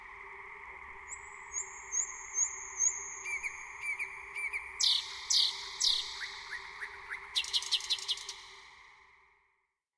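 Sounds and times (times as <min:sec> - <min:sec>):
thrush nightingale song: 0:01.0 - 0:08.6.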